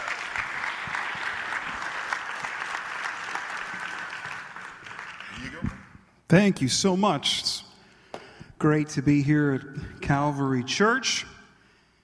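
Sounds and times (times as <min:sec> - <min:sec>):
audience applause welcoming a pastor to the stage at Calvary Church: 0:00.0 - 0:05.9
speech: 0:06.3 - 0:07.6, 0:08.6 - 0:11.3.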